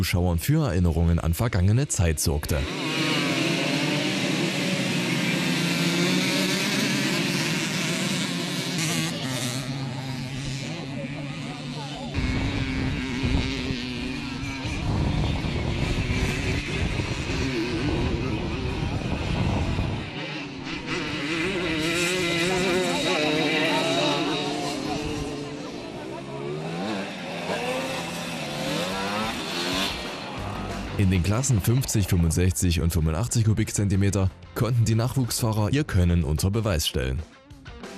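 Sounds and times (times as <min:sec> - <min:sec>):
speech: 0:00.0 - 0:03.2, 0:31.3 - 0:37.4
two-stroke mopeds racing on stubble field: 0:02.5 - 0:31.7.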